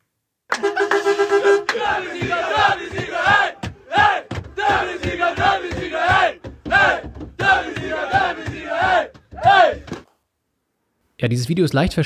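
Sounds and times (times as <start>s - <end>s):
team and fans roaring, celebrating: 1.4s - 10.0s
speech: 11.2s - 12.0s.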